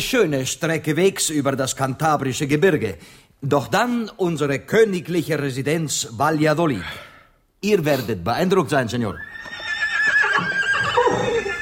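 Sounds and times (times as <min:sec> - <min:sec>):
speech: 0:00.0 - 0:09.3
hardy working horses whinnying: 0:09.2 - 0:11.6.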